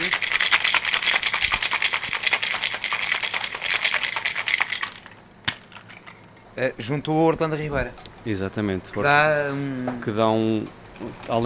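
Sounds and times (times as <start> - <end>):
cocktail shaker being shaken hard with ice: 0.0 - 6.5
speech: 6.6 - 11.4.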